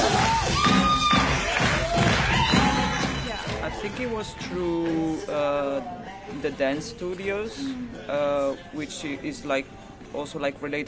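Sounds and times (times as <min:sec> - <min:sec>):
audience clapping and cheering: 0:00.0 - 0:05.2
speech: 0:04.0 - 0:10.8.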